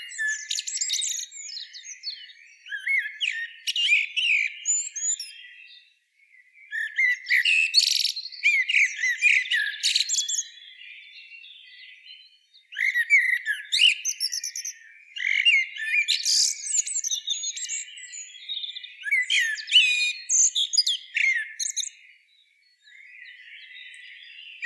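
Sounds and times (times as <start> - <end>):
Turdus merula blackbird: 0.0 - 24.6.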